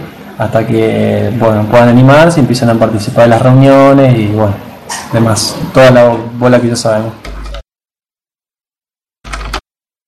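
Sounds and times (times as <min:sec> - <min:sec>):
speech: 0:00.4 - 0:07.4
computer keyboard typing: 0:09.2 - 0:09.6.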